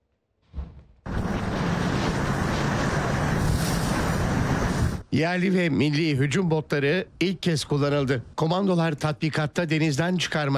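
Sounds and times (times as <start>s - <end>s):
burst: 1.1s - 5.1s
speech: 5.1s - 10.5s.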